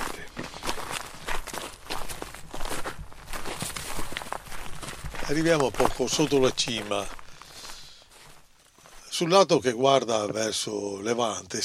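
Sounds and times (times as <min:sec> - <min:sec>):
chestnut leaves crunching underfoot: 0:00.0 - 0:09.0
speech: 0:05.3 - 0:07.2, 0:09.2 - 0:11.6.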